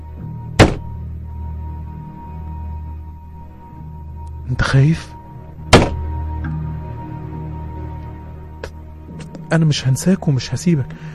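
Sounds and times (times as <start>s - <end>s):
single dull knock given as a yes answer: 0.6s - 0.9s, 5.7s - 6.0s
speech: 4.5s - 5.2s, 9.5s - 11.1s.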